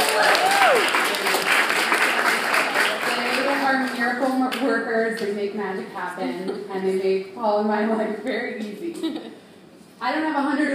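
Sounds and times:
audience applause for a group of creative interns: 0.0 - 3.7
speech: 4.2 - 9.4, 10.0 - 10.7.

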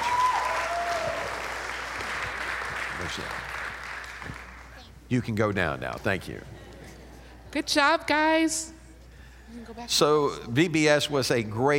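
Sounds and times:
audience clapping: 0.0 - 4.8
speech: 3.1 - 3.5, 5.1 - 6.6, 7.5 - 8.8, 9.5 - 11.7.

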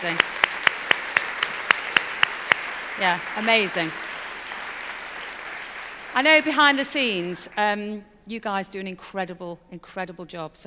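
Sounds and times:
speech: 0.0 - 0.4, 3.0 - 4.0, 6.2 - 10.6
sharp evenly spaced hand claps: 0.0 - 6.5.

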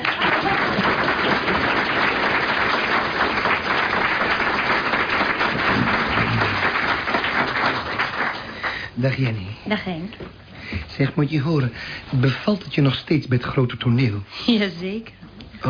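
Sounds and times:
audience applause: 0.0 - 9.0
speech: 9.0 - 15.6.

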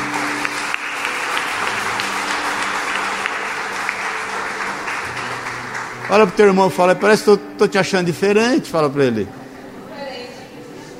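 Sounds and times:
crowd applause: 0.0 - 7.3
speech: 6.1 - 9.4.

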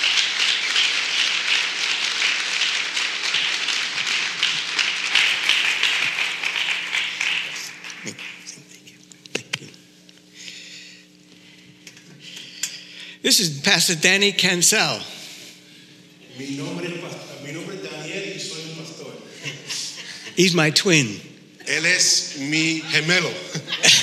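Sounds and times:
congregation applauding at a Spanish-language Assemblies of God church service: 0.0 - 8.6
speech: 13.3 - 15.2, 20.4 - 21.3, 21.9 - 24.0
laughter: 19.0 - 20.6, 23.0 - 24.0.

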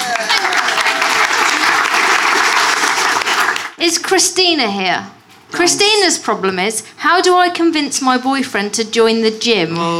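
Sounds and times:
audience clapping: 0.0 - 3.8
speech: 3.8 - 9.9.

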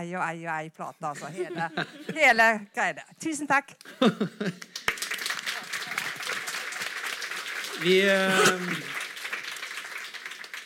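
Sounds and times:
speech: 0.0 - 4.9, 7.8 - 9.0
laughter: 1.2 - 2.4, 3.9 - 4.7, 7.8 - 8.9
audience applause: 4.6 - 10.6.

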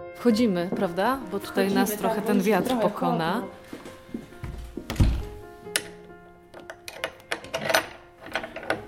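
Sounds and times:
speech: 0.2 - 3.6
door shutting with a heavy thud: 4.9 - 5.3
door latch clicking and rattling: 4.9 - 8.8.

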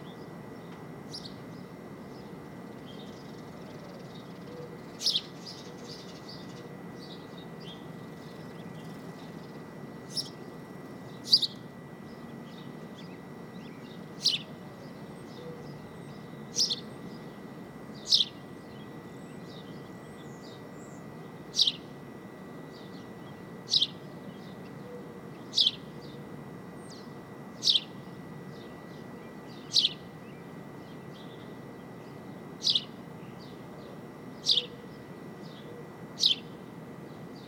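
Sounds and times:
birds chirping on a Brooklyn rooftop: 0.0 - 37.4
thin constant whine: 0.0 - 37.4.

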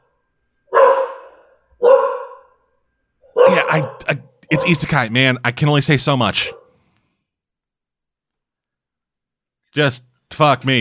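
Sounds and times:
dog barking: 0.7 - 2.6, 3.2 - 4.9, 6.4 - 6.8
speech: 3.7 - 6.6, 9.8 - 10.8.

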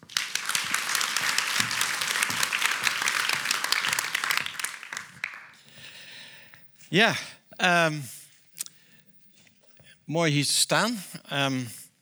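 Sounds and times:
audience applauding: 0.0 - 5.6
speech: 6.9 - 8.2, 10.1 - 11.8.

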